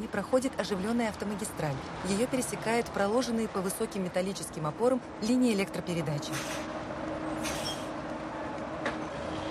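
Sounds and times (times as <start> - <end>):
speech: 0.0 - 6.7
bus drawing to a stop on a small town street: 0.0 - 9.5
brief airy hiss: 6.4 - 6.7.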